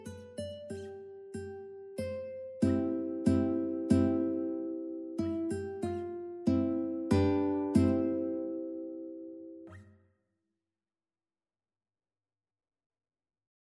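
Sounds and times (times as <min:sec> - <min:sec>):
ukulele minuet: 0:00.0 - 0:09.6.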